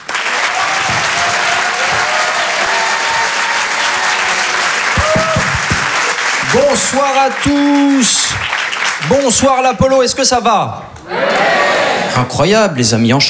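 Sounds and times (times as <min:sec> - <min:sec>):
comedy club audience applauding: 0:00.0 - 0:12.7
people shouting: 0:00.3 - 0:08.4, 0:10.9 - 0:12.4
whistles: 0:00.4 - 0:09.1
speech: 0:06.8 - 0:11.4, 0:12.2 - 0:13.2.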